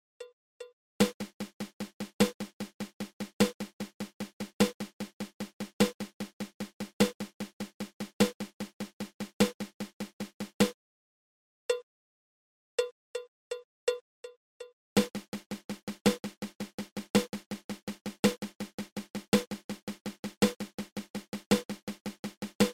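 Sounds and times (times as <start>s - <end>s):
paradiddle-diddle drum rudiment: 1.0s - 10.7s, 15.0s - 22.7s.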